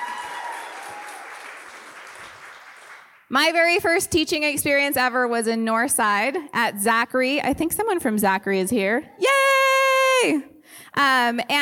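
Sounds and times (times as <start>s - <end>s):
audience applause: 0.0s - 3.3s
speech: 3.3s - 9.4s, 10.2s - 11.6s.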